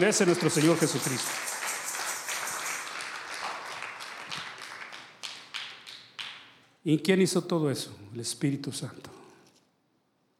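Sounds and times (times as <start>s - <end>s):
speech: 0.0s - 1.5s, 6.8s - 9.2s
audience applause: 0.0s - 6.0s.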